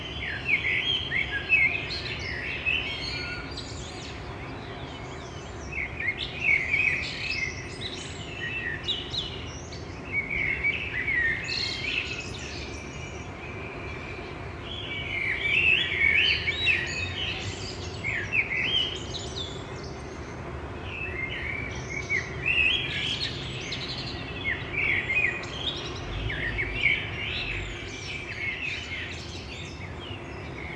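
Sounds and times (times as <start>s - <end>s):
birds singing in the morning: 0.0s - 30.7s.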